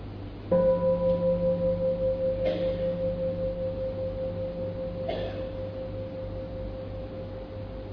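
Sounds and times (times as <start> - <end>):
low hum: 0.0 - 7.9
bell struck once and ringing: 0.5 - 7.9.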